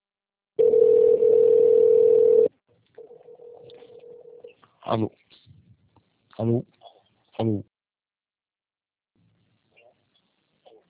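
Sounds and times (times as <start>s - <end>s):
telephone dial tone on a VoIP line: 0.6s - 4.4s
speech: 4.9s - 5.2s, 6.4s - 6.8s, 7.4s - 7.7s.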